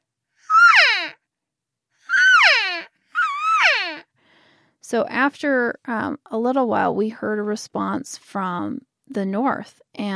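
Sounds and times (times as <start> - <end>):
hunter's cow call: 0.5 - 1.2, 2.1 - 4.0
speech: 4.9 - 10.1.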